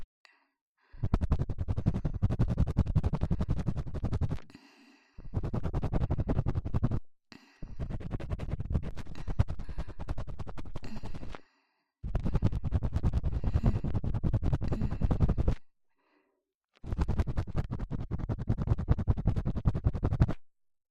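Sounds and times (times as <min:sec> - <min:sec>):
deep ear cleaning scratching in the right ear: 0:01.0 - 0:04.5, 0:05.3 - 0:07.0, 0:07.7 - 0:11.4, 0:12.1 - 0:15.6, 0:16.9 - 0:20.3.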